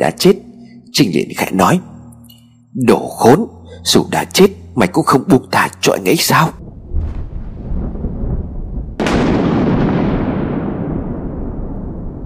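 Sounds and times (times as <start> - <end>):
speech: 0.0 - 0.4, 1.0 - 1.9, 2.8 - 6.6
thunderclap: 6.6 - 12.2.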